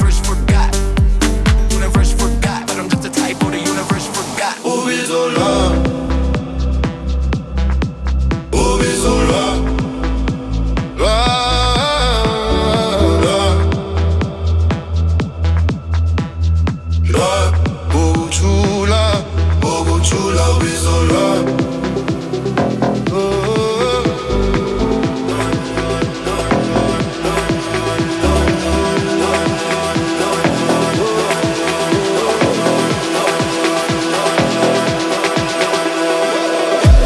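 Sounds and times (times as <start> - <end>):
Afro House music: 0.0 - 37.0.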